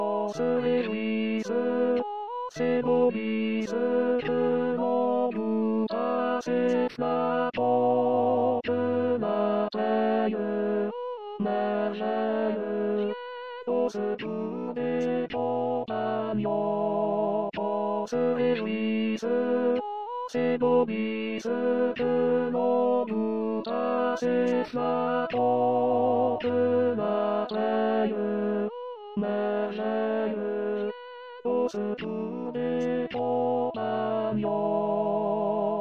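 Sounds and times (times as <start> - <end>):
tenor voice singing: 0.0 - 35.7.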